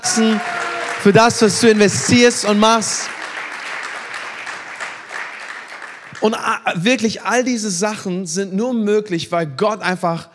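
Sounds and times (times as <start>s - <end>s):
church audience in Berlin applauding the team: 0.0s - 6.6s
speech: 0.2s - 3.2s, 6.2s - 10.3s.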